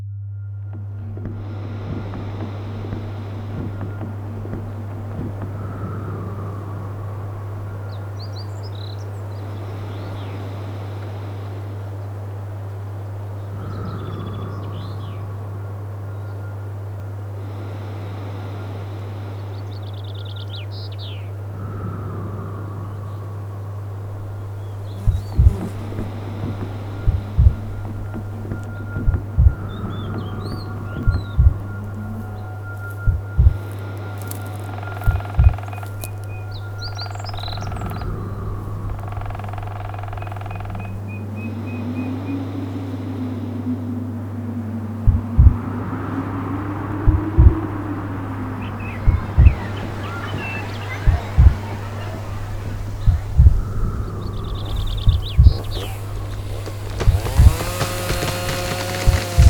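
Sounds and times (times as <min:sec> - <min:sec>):
Swedish forest ambience: 0:00.0 - 0:59.4.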